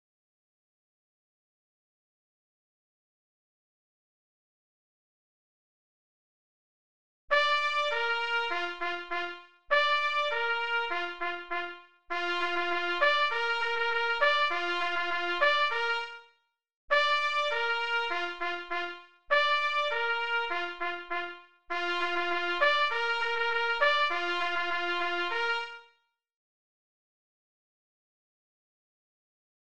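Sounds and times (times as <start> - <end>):
horn: 7.3 - 16.3, 16.9 - 26.0.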